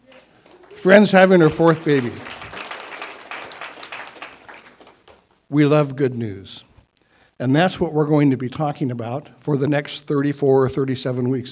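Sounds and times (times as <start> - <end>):
audience applause: 0.0 - 5.4
speech: 0.8 - 2.3, 5.5 - 6.7, 7.4 - 11.5.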